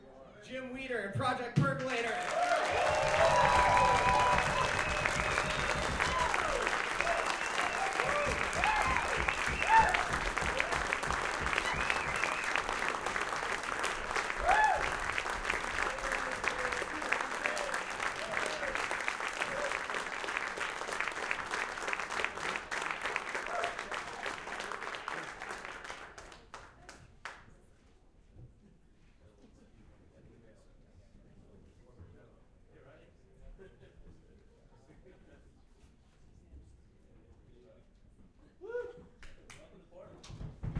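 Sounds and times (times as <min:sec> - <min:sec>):
speech: 0:00.4 - 0:03.8
thunderous audience applause: 0:01.8 - 0:27.4
scattered cheers: 0:02.1 - 0:13.4, 0:14.1 - 0:19.9.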